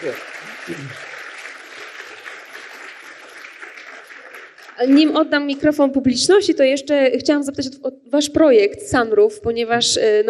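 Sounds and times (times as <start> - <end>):
speech: 0.0 - 1.2, 4.8 - 10.2
audience applause: 0.0 - 5.6.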